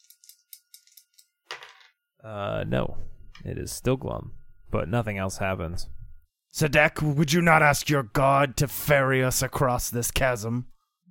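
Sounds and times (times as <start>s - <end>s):
dice being rolled: 0.0s - 1.9s
speech: 2.2s - 6.0s, 6.6s - 10.7s.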